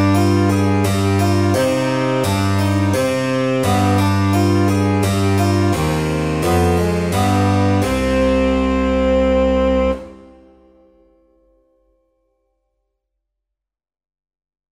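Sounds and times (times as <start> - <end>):
minuet: 0.0 - 11.1.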